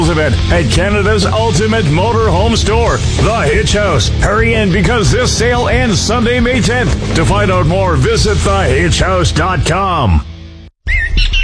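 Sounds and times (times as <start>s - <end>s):
speech: 0.1s - 10.3s
bird squawking in a spring backyard in southern Ontario: 10.9s - 11.4s.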